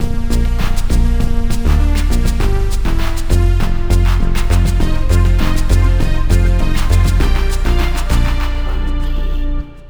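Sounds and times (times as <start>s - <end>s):
Italo disco music: 0.0s - 9.8s.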